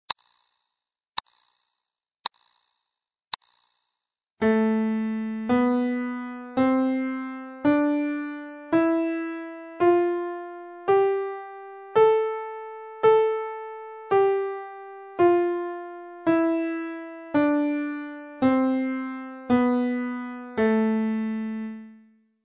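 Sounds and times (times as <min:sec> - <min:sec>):
natural minor scale: 0:04.4 - 0:22.2.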